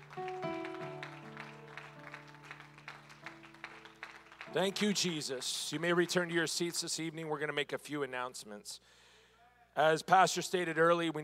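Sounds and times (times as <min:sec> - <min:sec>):
organ or keyboard chords: 0:00.0 - 0:06.0
audience clapping: 0:00.0 - 0:06.8
speech: 0:04.5 - 0:09.0, 0:09.8 - 0:11.2.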